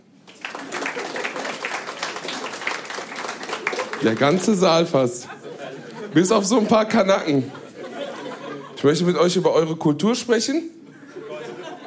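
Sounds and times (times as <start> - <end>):
audience applause: 0.2 - 4.7
laughter: 3.5 - 9.4, 10.8 - 11.8
speech: 4.0 - 5.4, 6.1 - 7.6, 8.8 - 10.8.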